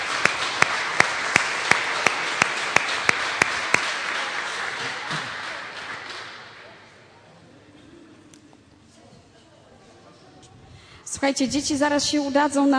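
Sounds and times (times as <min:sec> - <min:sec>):
audience applause for teachers: 0:00.0 - 0:07.3
speech: 0:11.2 - 0:12.7.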